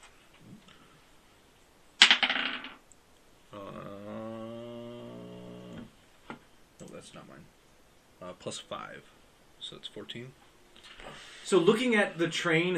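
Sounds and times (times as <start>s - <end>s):
dice clattering onto a hard surface: 2.0s - 2.8s
buzzy droning tone: 3.4s - 6.2s
speech: 7.0s - 7.6s, 8.2s - 12.7s.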